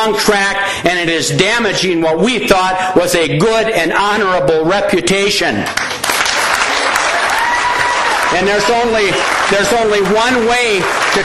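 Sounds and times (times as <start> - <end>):
speech: 0.0 - 6.0, 8.3 - 11.2
crowd applause: 5.8 - 11.2.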